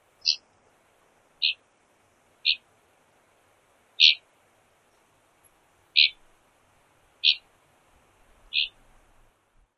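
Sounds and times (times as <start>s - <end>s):
zeet flight calls: 0.2s - 0.4s, 1.4s - 1.6s, 2.4s - 2.6s, 4.0s - 4.2s, 6.0s - 6.2s, 7.2s - 7.4s, 8.5s - 8.8s.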